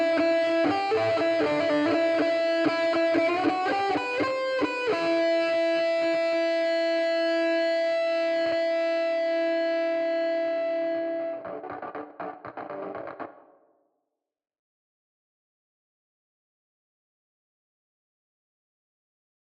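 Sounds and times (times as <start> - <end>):
guitar: 0.0 - 13.7.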